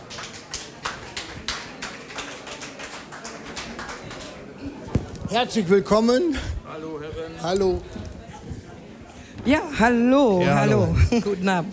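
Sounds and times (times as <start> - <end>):
audience applause: 0.0 - 4.7
speech: 5.3 - 6.5, 7.4 - 8.0, 9.5 - 11.7.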